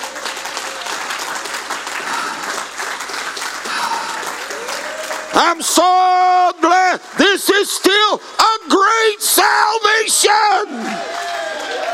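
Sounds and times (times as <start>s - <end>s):
audience hand clapping: 0.0s - 7.4s, 10.6s - 11.9s
speech: 5.4s - 11.9s.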